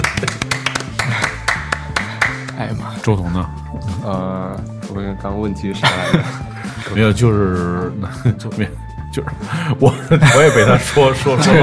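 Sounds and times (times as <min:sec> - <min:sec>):
laughter: 0:00.0 - 0:02.3, 0:05.8 - 0:07.0, 0:09.5 - 0:11.6
applause sound effect button: 0:00.0 - 0:02.6
speech: 0:00.2 - 0:00.5, 0:02.6 - 0:11.6.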